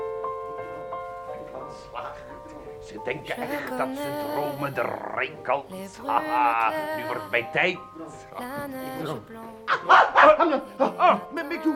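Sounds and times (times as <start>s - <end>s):
speech: 2.9s - 11.7s
dog barking: 9.7s - 10.6s.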